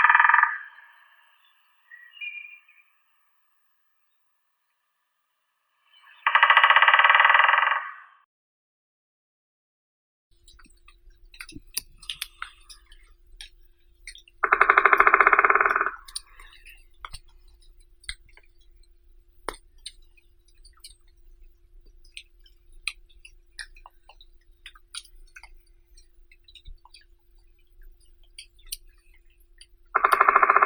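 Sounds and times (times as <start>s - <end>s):
white-backed woodpecker Dendrocopos leucotos: 0.0s - 1.1s, 6.0s - 8.0s, 10.4s - 18.6s, 22.1s - 30.6s.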